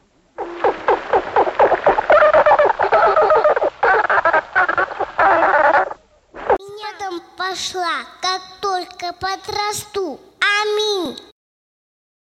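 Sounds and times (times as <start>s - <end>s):
dolphins chattering with whistles, chirps and clicking buzzes: 0.4s - 6.0s
speech: 7.6s - 8.2s, 9.0s - 11.2s.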